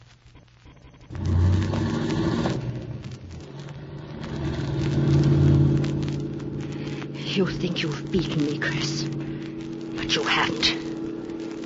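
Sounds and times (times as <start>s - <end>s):
car engine starting and car driven off: 1.0s - 9.7s
speech: 7.4s - 9.3s, 10.1s - 10.9s.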